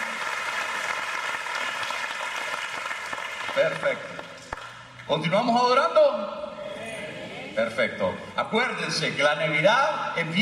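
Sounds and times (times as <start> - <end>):
audience applauding: 0.0 - 4.8
speech: 3.6 - 4.2, 5.1 - 6.4, 7.6 - 10.4.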